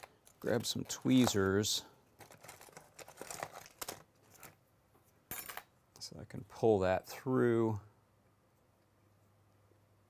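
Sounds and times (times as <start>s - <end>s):
small piece of tape crinkling and rustling while being trimmed: 0.0s - 4.6s
speech: 0.4s - 1.9s, 6.1s - 7.9s.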